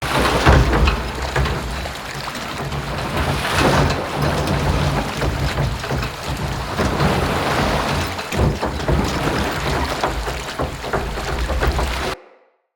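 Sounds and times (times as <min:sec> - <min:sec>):
mill machinery under a city: 0:00.0 - 0:12.2.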